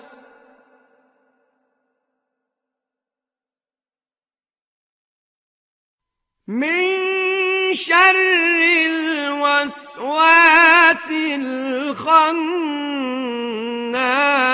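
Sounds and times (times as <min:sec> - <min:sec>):
Quran recitation: 0:00.0 - 0:01.2, 0:06.5 - 0:14.5.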